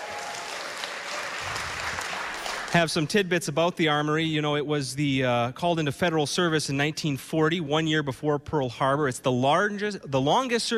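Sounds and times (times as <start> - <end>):
audience applause at a live radio show in Armory Square, Park Rapids, Minnesota: 0.0 - 3.1
speech: 2.7 - 10.7.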